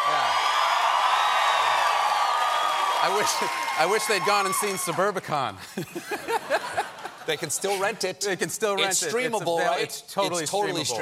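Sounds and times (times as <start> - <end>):
raucous live studio audience at a talk show cheering and whooping: 0.0 - 5.2
speech: 3.0 - 11.0
laughter: 5.6 - 8.1.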